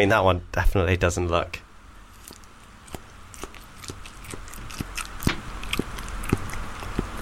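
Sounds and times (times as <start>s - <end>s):
speech: 0.0s - 1.6s
very small man eating a very large bit of food: 2.1s - 7.2s.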